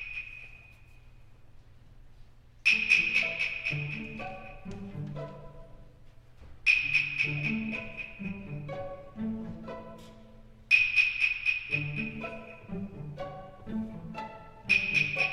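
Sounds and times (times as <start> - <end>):
ambient orchestral music: 2.7 - 6.1, 6.7 - 15.3.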